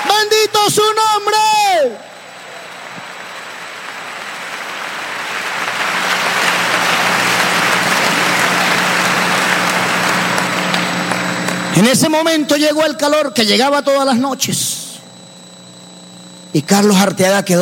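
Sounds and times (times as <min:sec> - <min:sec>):
crowd applause: 0:00.0 - 0:00.9, 0:02.2 - 0:11.9
speech: 0:00.7 - 0:02.1, 0:11.8 - 0:14.8, 0:16.5 - 0:17.5.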